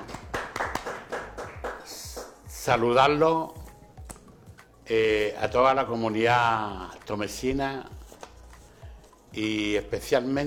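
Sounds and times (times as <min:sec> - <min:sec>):
small group clapping in Tomé, Chile: 0:00.0 - 0:02.6
speech: 0:02.6 - 0:03.6, 0:04.9 - 0:08.0, 0:09.3 - 0:10.4.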